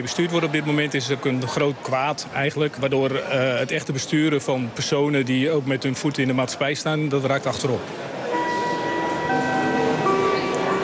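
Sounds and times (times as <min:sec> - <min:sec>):
speech: 0:00.0 - 0:08.2
electronic train departure bell chiming: 0:08.3 - 0:10.8.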